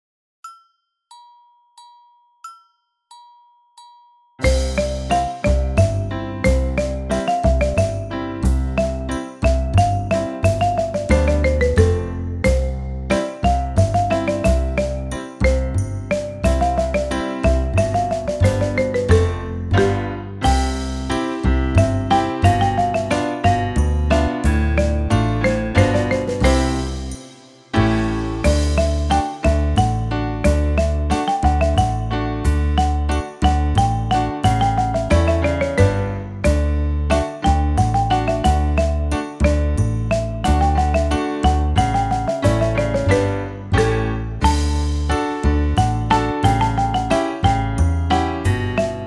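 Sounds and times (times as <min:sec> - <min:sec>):
crazy waltz music: 0:04.4 - 0:49.0.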